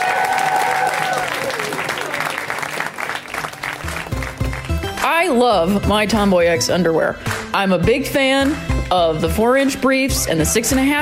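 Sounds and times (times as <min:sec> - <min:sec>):
audience applauding a comedian coming back on stage: 0:00.0 - 0:05.0
speech: 0:05.2 - 0:11.0.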